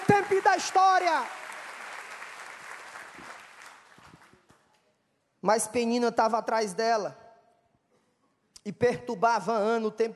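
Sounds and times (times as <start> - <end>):
audience applause: 0.0 - 4.4
speech: 0.2 - 1.5, 5.4 - 7.2, 8.6 - 10.1.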